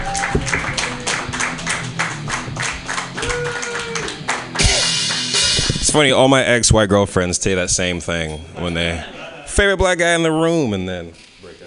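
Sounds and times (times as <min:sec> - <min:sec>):
comedy club audience applause: 0:00.0 - 0:05.5
speech: 0:06.0 - 0:11.2.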